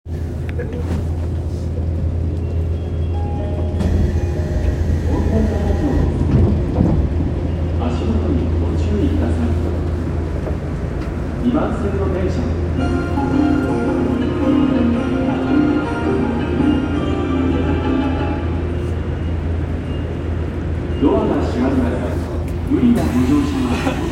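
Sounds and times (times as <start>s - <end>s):
train: 0.1s - 24.1s.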